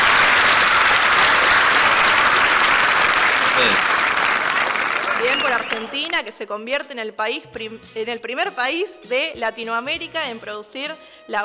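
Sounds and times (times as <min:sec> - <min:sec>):
audience applause: 0:00.0 - 0:06.4
speech: 0:05.8 - 0:11.4.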